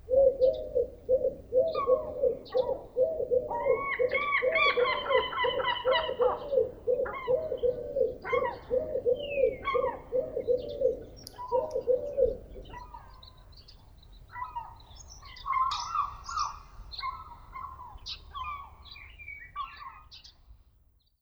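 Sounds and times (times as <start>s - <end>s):
birds in Lesconil: 0.0s - 21.2s.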